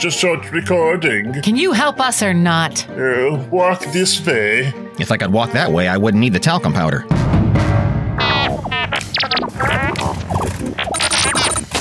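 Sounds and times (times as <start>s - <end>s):
speech: 0.0s - 7.4s
computer beeping and booping sound effect: 8.2s - 11.7s.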